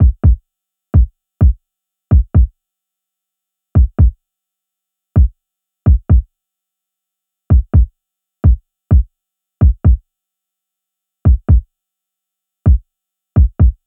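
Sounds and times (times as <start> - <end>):
kick drum: 0.0 - 0.4, 1.0 - 2.5, 3.8 - 4.2, 5.2 - 6.3, 7.5 - 10.0, 11.3 - 11.7, 12.7 - 13.8.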